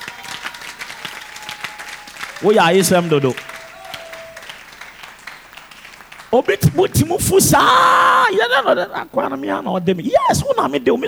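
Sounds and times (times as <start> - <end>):
audience clapping: 0.0 - 7.4
speech: 2.4 - 3.5, 6.3 - 11.0.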